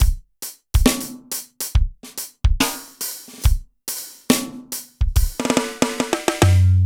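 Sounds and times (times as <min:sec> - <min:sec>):
acoustic drums and percussion: 0:00.0 - 0:06.8.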